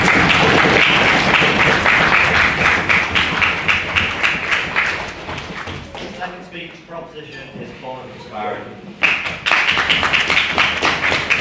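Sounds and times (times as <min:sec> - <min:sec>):
audience applause: 0:00.0 - 0:06.2, 0:09.0 - 0:11.4.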